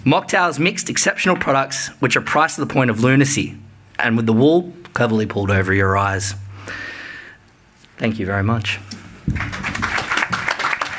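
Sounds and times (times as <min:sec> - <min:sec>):
speech: 0:00.0 - 0:06.9, 0:08.0 - 0:09.7
audience applause: 0:09.3 - 0:10.9.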